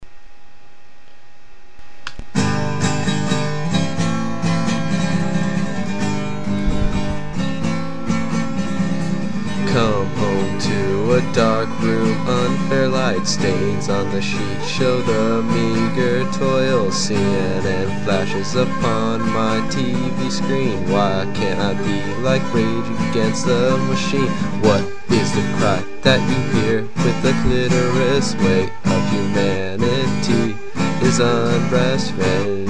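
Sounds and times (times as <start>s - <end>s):
acoustic music: 2.3s - 32.6s.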